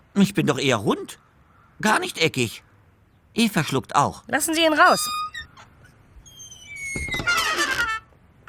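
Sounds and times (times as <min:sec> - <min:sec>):
speech: 0:00.2 - 0:02.7, 0:03.4 - 0:05.5
door scraping open: 0:04.9 - 0:08.0.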